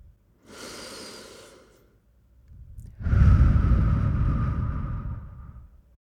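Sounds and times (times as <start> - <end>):
deep breath in and out during a guided relaxation exercise: 0.4 - 1.9, 2.8 - 5.9.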